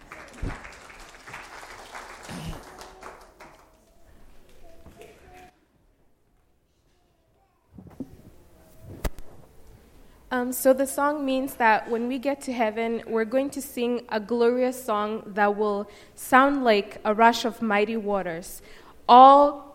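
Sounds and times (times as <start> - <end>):
audience applause: 0.0 - 4.3
speech: 10.3 - 19.7.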